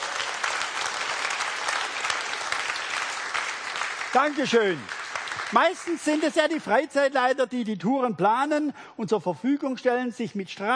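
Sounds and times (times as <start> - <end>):
audience applause: 0.0 - 6.4
speech: 4.1 - 10.7.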